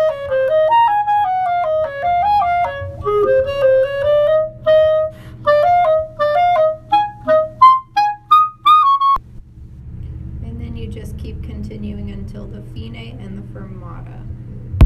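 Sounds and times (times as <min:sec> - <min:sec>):
flute: 0:00.0 - 0:09.2.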